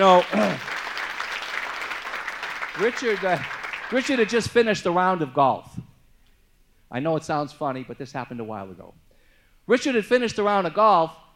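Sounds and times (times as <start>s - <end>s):
speech: 0.0s - 0.7s, 2.8s - 5.8s, 6.9s - 9.0s, 9.7s - 11.2s
audience applauding a man at a live talk: 0.0s - 4.4s.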